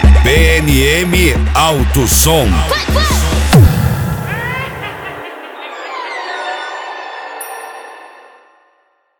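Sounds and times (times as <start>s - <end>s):
funk music: 0.2s - 5.5s.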